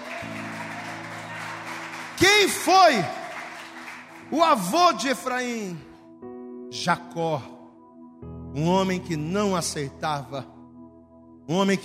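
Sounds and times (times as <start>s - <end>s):
audience applauding: 0.0s - 4.8s
speech: 2.2s - 3.2s, 4.3s - 5.9s, 6.7s - 7.6s, 8.5s - 10.5s, 11.5s - 11.8s.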